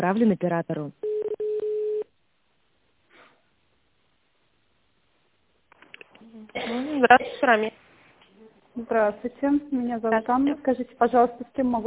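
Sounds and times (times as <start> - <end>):
speech: 0.0 - 1.2, 6.4 - 7.8, 8.8 - 11.8
telephone keypad tones dialing an extension number on a company line: 1.0 - 2.0.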